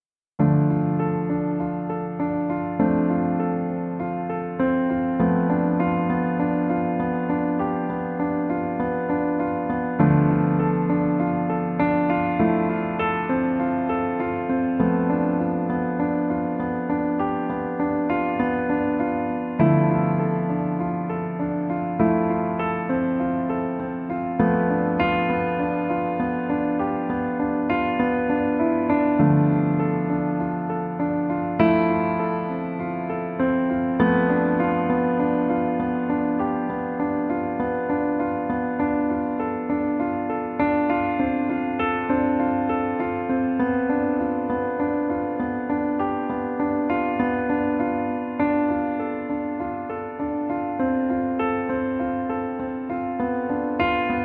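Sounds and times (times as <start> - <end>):
piano: 0.0 - 54.2.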